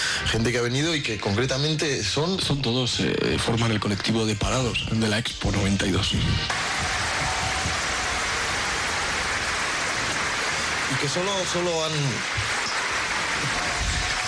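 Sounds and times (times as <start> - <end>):
speech: 0.3 - 7.0, 11.0 - 12.7
audience applause: 6.5 - 14.2.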